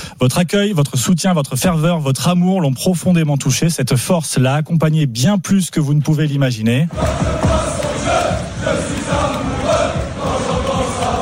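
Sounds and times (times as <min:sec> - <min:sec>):
speech: 0:00.2 - 0:09.2
football supporters chanting: 0:06.9 - 0:11.1.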